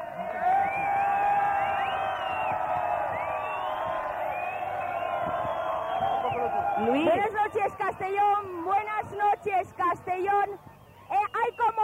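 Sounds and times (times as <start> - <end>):
large crowd cheering: 0.0 - 11.8
shouts and whoops: 0.1 - 8.4
crowd clapping: 0.2 - 7.9
speech: 6.8 - 10.7.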